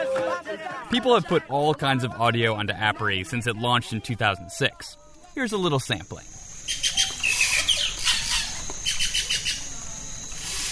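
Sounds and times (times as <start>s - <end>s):
speech: 0.8s - 6.9s
high insect buzz in the Amazon rainforest: 4.7s - 10.7s
birds chirping and whistling in the Amazon rainforest: 6.5s - 9.7s.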